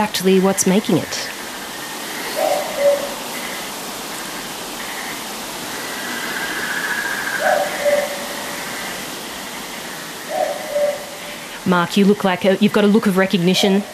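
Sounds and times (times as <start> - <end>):
speech: 0.0 - 1.4, 11.7 - 13.9
boobook owl calling at night: 1.1 - 11.6.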